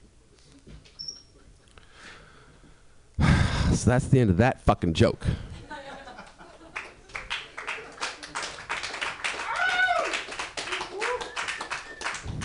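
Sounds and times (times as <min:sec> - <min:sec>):
speech: 0:03.7 - 0:05.5
laughter: 0:05.6 - 0:08.3
comedy club audience applause: 0:06.7 - 0:12.4
whoops and cheering voices: 0:09.3 - 0:12.2.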